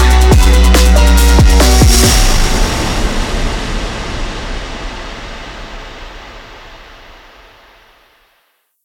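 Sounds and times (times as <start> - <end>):
phonk music: 0.0 - 5.8.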